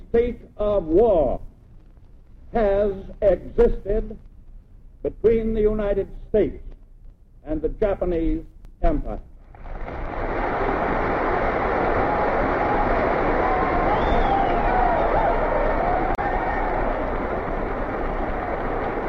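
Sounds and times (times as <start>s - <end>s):
speech: 0.1s - 1.5s, 2.5s - 4.3s, 5.0s - 6.7s, 7.4s - 10.0s
roaring applause: 9.5s - 19.0s.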